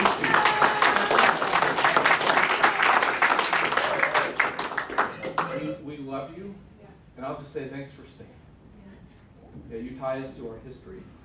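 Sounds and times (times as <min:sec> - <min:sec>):
audience applauding: 0:00.0 - 0:05.6
speech: 0:07.2 - 0:08.5, 0:09.5 - 0:11.2.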